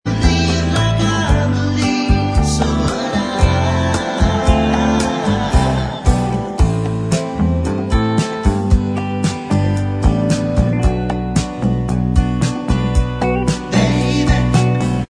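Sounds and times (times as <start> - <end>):
backing vocals: 0.1 - 6.9, 13.7 - 15.0
backing track: 0.1 - 15.0.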